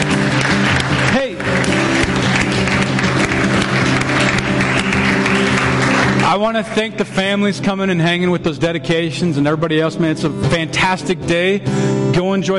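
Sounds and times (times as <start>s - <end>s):
audience applause: 0.0s - 7.2s
speech: 6.4s - 12.5s.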